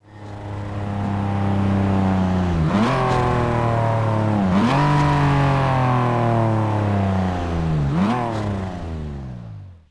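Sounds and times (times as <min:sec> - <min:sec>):
vehicles throttling off: 0:00.1 - 0:09.6.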